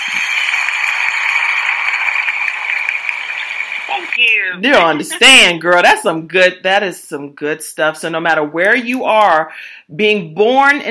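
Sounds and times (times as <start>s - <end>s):
applause sound effect: 0.0s - 4.5s
speech: 4.0s - 10.9s.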